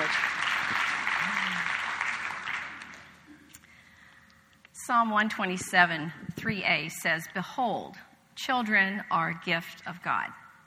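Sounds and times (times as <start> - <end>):
audience applause: 0.0 - 3.2
speech: 4.9 - 10.4.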